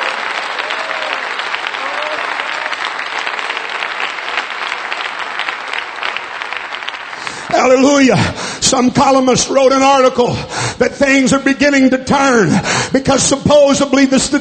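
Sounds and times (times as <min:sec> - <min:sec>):
audience clapping hands: 0:00.0 - 0:09.0
speech: 0:07.6 - 0:14.3.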